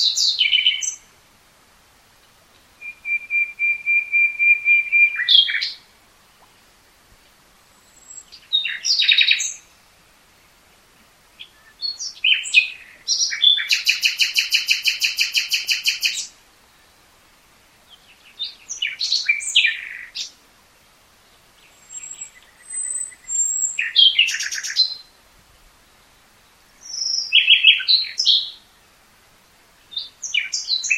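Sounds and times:
common nightingale singing: 0.0s - 1.1s, 2.2s - 5.9s, 7.7s - 9.8s, 11.3s - 17.0s, 17.8s - 20.4s, 21.2s - 25.2s, 26.1s - 29.0s, 29.7s - 30.9s.

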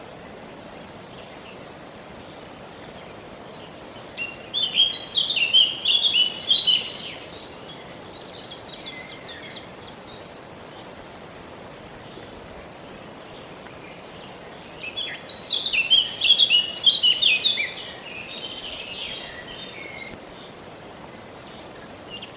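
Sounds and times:
Eurasian blackcap warbling song: 3.6s - 10.9s, 12.0s - 20.5s.

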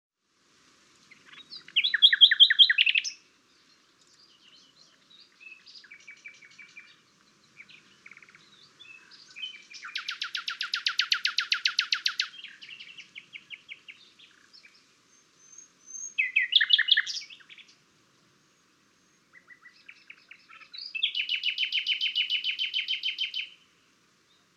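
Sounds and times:
common nightingale song: 1.0s - 24.5s.

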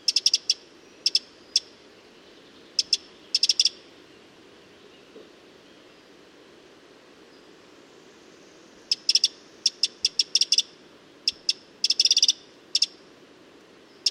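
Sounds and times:
Eurasian wren Troglodytes troglodytes ticking: 0.0s - 1.7s, 2.8s - 3.8s, 8.9s - 10.7s, 11.3s - 13.0s.

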